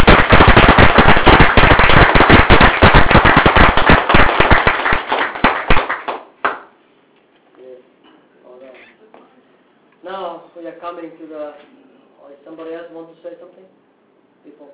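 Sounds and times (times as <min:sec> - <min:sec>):
loud audience applause: 0:00.0 - 0:06.6.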